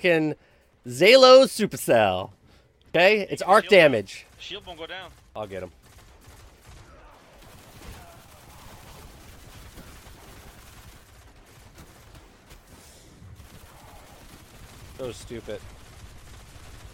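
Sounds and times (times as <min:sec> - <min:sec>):
speech: 0:00.0 - 0:05.8, 0:15.0 - 0:15.7
faint machine-gun fire in a video game shootout: 0:03.5 - 0:16.9.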